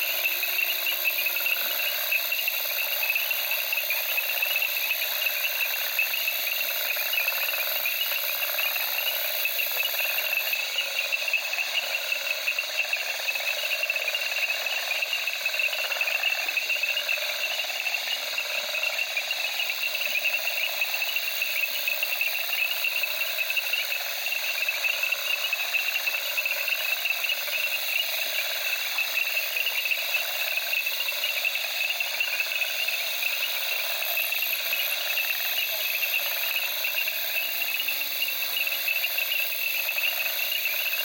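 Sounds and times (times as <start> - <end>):
crickets at night in the Okavango: 0.0 - 41.0
frogs in reeds in the Okavango: 0.0 - 41.0.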